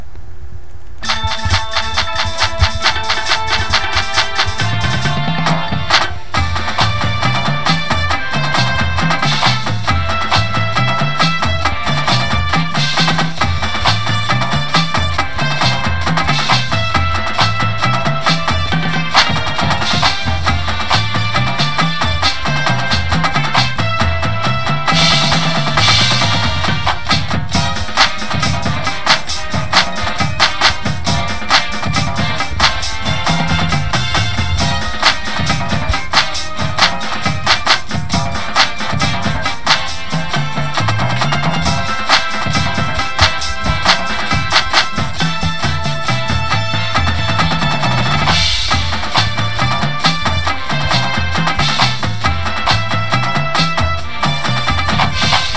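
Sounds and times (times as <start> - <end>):
full drumline: 1.0 - 55.5
music: 1.0 - 55.5.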